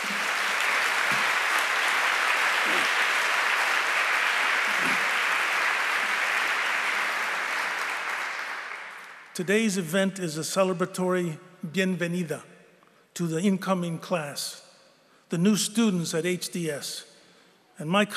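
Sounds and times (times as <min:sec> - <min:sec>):
crowd applause: 0:00.0 - 0:09.3
speech: 0:09.4 - 0:12.5, 0:13.2 - 0:14.6, 0:15.3 - 0:17.1, 0:17.8 - 0:18.1.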